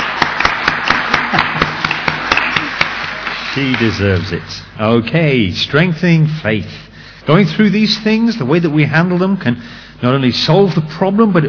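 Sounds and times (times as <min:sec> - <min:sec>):
audience clapping: 0:00.0 - 0:04.2
speech: 0:01.3 - 0:01.6, 0:03.6 - 0:11.4.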